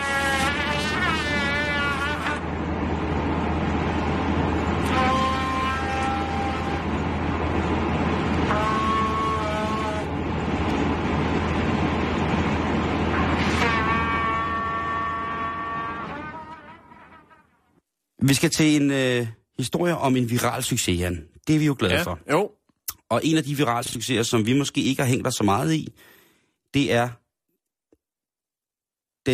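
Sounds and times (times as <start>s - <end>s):
trumpet played inside a car: 0.0s - 2.5s, 4.8s - 7.2s, 8.4s - 10.2s, 13.1s - 17.8s
car engine drone: 0.0s - 17.3s
speech: 18.3s - 22.4s, 23.1s - 27.2s.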